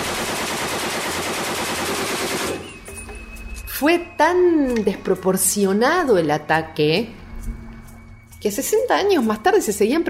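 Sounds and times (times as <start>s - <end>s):
Colt heavy machine gun firing: 0.0s - 2.8s
speech: 3.8s - 7.2s, 8.4s - 10.0s.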